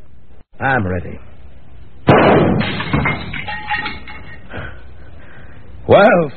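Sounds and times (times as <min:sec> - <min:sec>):
speech: 0:00.6 - 0:01.3, 0:05.9 - 0:06.3
gunshot: 0:02.1 - 0:03.1
crash of breaking glass and debris from a candle holder and a picture: 0:02.1 - 0:04.5.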